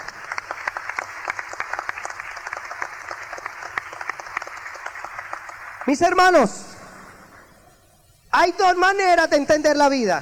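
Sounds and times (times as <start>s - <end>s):
audience applause: 0.0s - 6.0s
speech: 5.8s - 6.7s, 8.4s - 10.2s.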